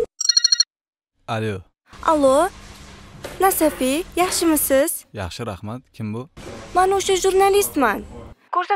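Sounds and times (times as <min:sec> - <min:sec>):
telephone keypad two-tone beeps: 0:00.2 - 0:00.7
speech: 0:01.3 - 0:02.6, 0:03.4 - 0:08.7.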